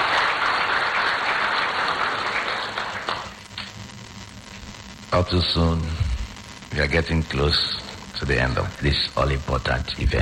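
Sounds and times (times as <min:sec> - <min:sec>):
audience round of applause: 0:00.0 - 0:03.7
speech: 0:05.2 - 0:06.1, 0:06.8 - 0:10.2.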